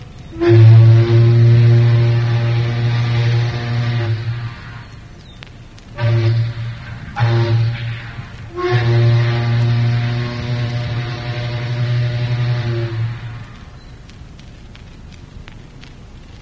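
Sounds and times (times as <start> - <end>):
steam towboat whistle blast: 0.3 - 5.1, 6.0 - 13.9.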